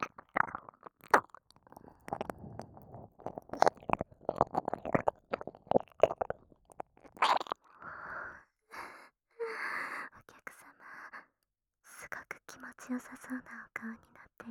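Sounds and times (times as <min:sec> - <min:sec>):
ear licking sounds: 0:00.0 - 0:07.6.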